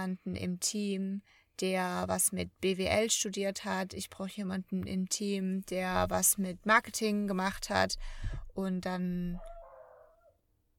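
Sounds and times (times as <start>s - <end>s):
speech: 0.0s - 9.6s
dog's faint howl or whine: 9.4s - 10.4s.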